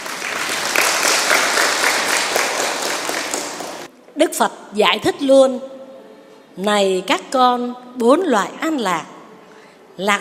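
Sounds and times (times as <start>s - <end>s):
audience applause: 0.0s - 3.9s
speech: 4.2s - 5.7s, 6.6s - 9.1s, 10.0s - 10.1s.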